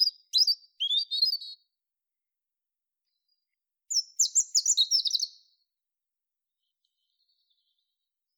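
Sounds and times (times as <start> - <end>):
European robin Erithacus rubecula singing: 0.0 - 1.7, 3.9 - 5.6.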